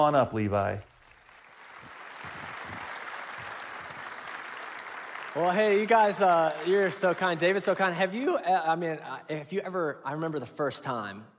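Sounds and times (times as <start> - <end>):
speech: 0.0 - 0.9, 5.3 - 11.3
audience applause: 1.0 - 7.7.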